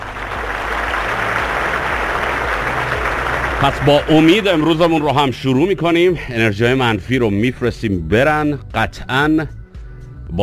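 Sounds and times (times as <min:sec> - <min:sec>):
crowd applause: 0:00.0 - 0:05.5
speech: 0:03.6 - 0:09.6.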